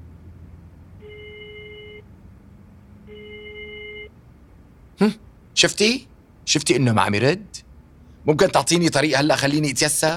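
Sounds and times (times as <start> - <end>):
low hum: 0.0 - 10.1
WhatsApp outgoing call ringback tone on speakerphone: 1.0 - 2.0, 3.1 - 4.1
speech: 5.0 - 7.6, 8.2 - 10.1.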